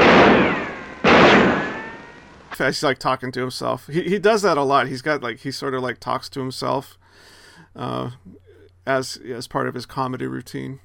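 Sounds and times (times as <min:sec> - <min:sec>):
gunshots: 0:00.0 - 0:02.6
speech: 0:02.6 - 0:10.8.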